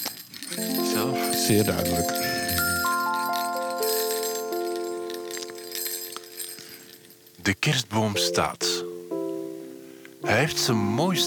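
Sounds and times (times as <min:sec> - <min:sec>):
Christmas bells chiming: 0:00.0 - 0:07.4
faint glassy jingle: 0:00.0 - 0:07.5
speech: 0:01.5 - 0:02.2, 0:07.6 - 0:08.7, 0:10.3 - 0:11.2.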